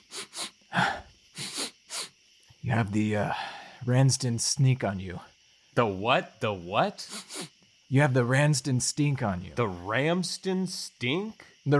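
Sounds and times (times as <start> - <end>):
person imitating sniffing: 0.0 - 2.2, 7.0 - 7.6
speech: 2.7 - 11.7.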